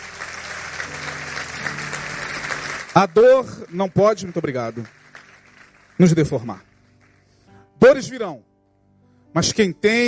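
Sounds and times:
audience applauding: 0:00.0 - 0:07.3
speech: 0:03.0 - 0:05.0, 0:06.0 - 0:06.7, 0:07.8 - 0:08.5, 0:09.3 - 0:10.0.

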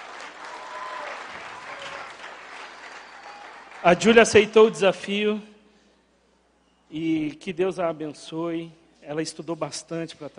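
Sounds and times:
audience applause: 0:00.0 - 0:04.1
speech: 0:03.8 - 0:05.5, 0:06.9 - 0:10.3.

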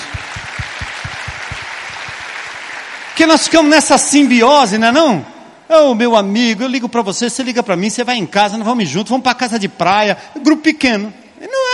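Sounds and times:
rhythmic thumps: 0:00.0 - 0:02.7
audience applause: 0:00.0 - 0:03.6
speech: 0:03.2 - 0:11.2.

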